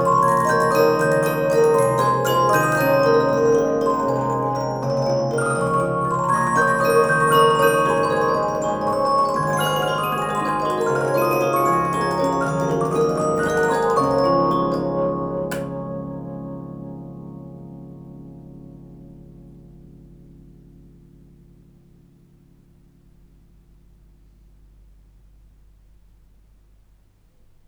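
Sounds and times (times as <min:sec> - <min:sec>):
Swiss six-melody cylinder music box: 0:00.0 - 0:15.8.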